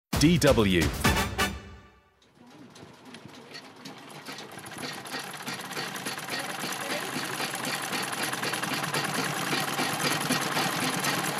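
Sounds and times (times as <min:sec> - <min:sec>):
speech: 0:00.2 - 0:01.1
sewing machine stitching a colourful dress: 0:02.2 - 0:11.3.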